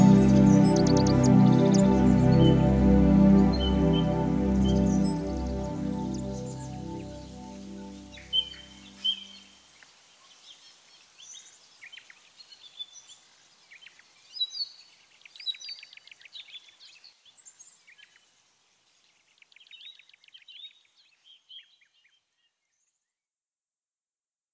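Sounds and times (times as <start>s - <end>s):
ambient keyboards: 0.0s - 9.2s.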